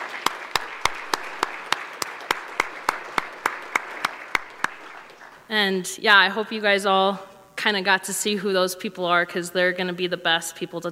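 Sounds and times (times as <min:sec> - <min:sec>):
sharp evenly paced clapping: 0:00.0 - 0:05.4
audience applause: 0:00.0 - 0:05.5
speech: 0:05.5 - 0:10.8.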